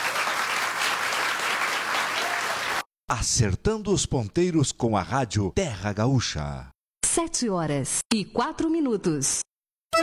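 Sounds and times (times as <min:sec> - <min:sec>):
audience applause: 0:00.0 - 0:02.9
speech: 0:03.1 - 0:10.0.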